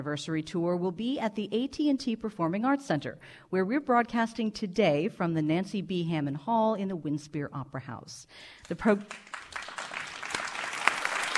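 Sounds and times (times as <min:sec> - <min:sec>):
speech: 0:00.0 - 0:09.5
live audience clapping at the Winspear Opera House in Dallas: 0:08.6 - 0:11.3.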